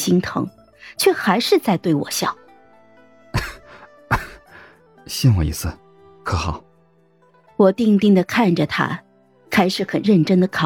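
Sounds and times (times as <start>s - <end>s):
speech: 0.0s - 2.4s, 5.1s - 6.7s, 7.6s - 10.6s
heavy coughing: 3.4s - 4.6s.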